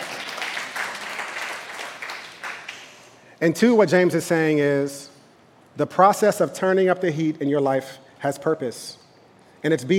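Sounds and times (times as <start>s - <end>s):
audience applause: 0.0s - 3.0s
speech: 3.4s - 5.1s, 5.8s - 9.0s, 9.6s - 9.9s.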